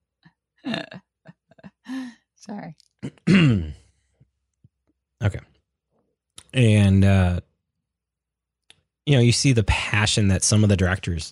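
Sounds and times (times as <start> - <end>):
speech: 2.4 - 3.8, 5.2 - 5.5, 6.6 - 7.4, 9.1 - 11.3
person hiccuping: 3.0 - 3.8.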